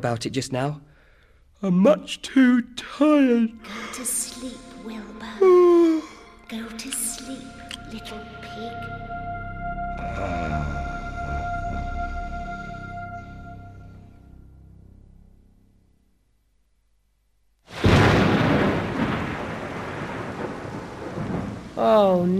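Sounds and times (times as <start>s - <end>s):
speech: 0.0s - 0.9s, 1.6s - 9.3s, 10.1s - 10.8s, 21.9s - 22.3s
rain storm: 17.7s - 22.3s.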